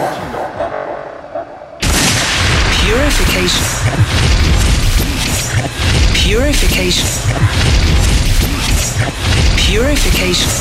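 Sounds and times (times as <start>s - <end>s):
epic explosion boom sound effect: 1.8s - 10.2s
speech: 3.1s - 4.5s, 6.2s - 8.2s, 9.0s - 10.5s.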